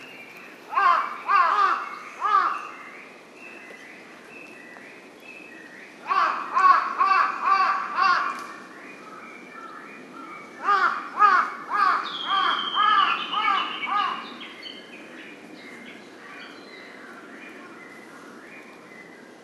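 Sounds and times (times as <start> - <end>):
Large-billed crow giving harsh caws: 0.7 - 2.6, 6.1 - 8.4, 10.6 - 14.2.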